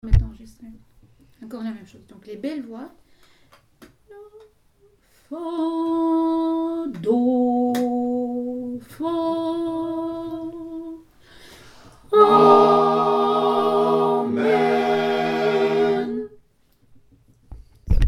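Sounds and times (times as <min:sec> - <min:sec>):
ensemble singing amen: 0:05.3 - 0:11.1, 0:12.1 - 0:16.4.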